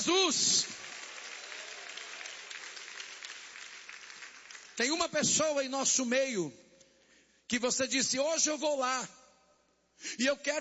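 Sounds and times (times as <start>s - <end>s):
speech: 0.0s - 0.7s, 4.8s - 6.6s, 7.5s - 9.2s, 10.0s - 10.5s
audience clapping hands: 0.0s - 5.2s.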